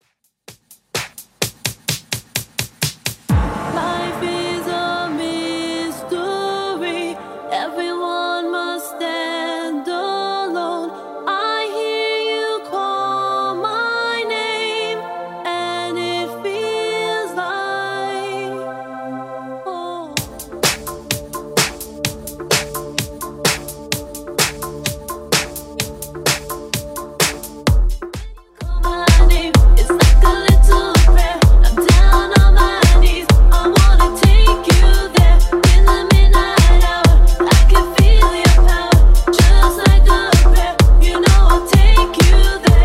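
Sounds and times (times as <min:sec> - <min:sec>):
house music at 128 BPM: 0:00.6 - 0:09.2, 0:11.8 - 0:42.8.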